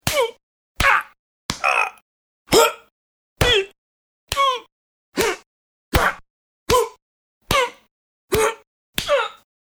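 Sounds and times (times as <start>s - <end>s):
punches: 0.0s - 1.8s, 3.4s - 4.6s, 5.2s - 9.3s
vocal sounds with punches: 0.8s - 2.9s.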